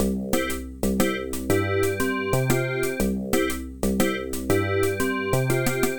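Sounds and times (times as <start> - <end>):
waltz on PC organ: 0.4 - 5.9.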